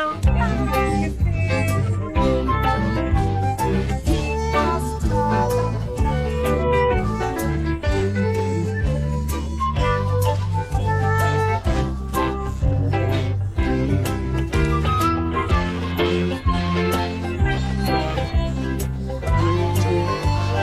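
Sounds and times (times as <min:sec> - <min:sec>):
songs: 0:00.2 - 0:20.6.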